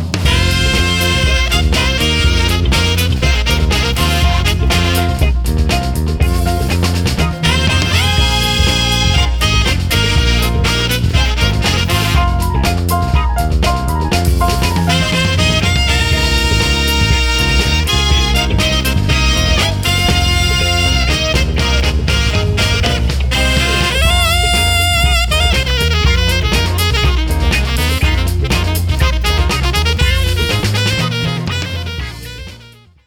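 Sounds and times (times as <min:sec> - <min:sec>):
jazz funk music: 0:00.1 - 0:33.0.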